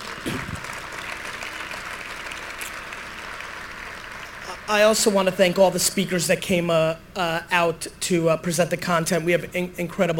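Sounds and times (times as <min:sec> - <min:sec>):
audience applause: 0:00.0 - 0:04.7
speech: 0:00.2 - 0:00.6, 0:04.7 - 0:10.1.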